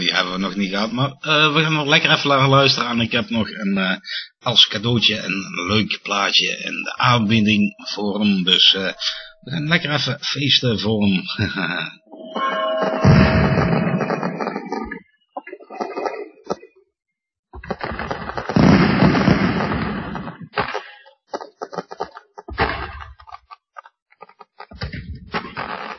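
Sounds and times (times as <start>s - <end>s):
speech: 0.1s - 13.2s
thin whistling tone of fireworks: 12.3s - 15.0s, 17.6s - 20.8s
fireworks exploding for a birthday celebration: 17.6s - 20.8s.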